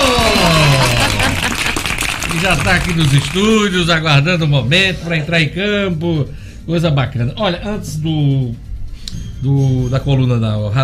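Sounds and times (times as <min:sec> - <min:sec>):
laughter: 0:00.0 - 0:02.9, 0:04.8 - 0:05.8
applause: 0:00.0 - 0:03.9
speech: 0:02.4 - 0:10.8.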